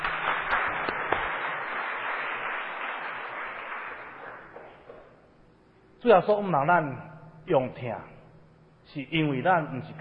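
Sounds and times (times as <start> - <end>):
warm applause from audience: 0.0 - 5.1
speech: 6.0 - 8.1, 8.9 - 10.0.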